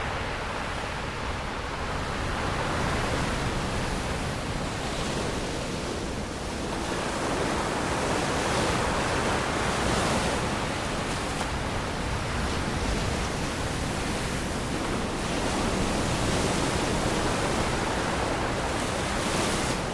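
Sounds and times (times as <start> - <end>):
open seas ocean shoreline waves: 0.0 - 19.9.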